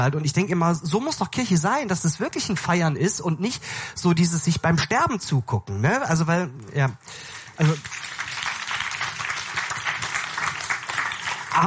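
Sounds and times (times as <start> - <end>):
speech: 0.0 - 8.1
people clapping: 7.4 - 11.6.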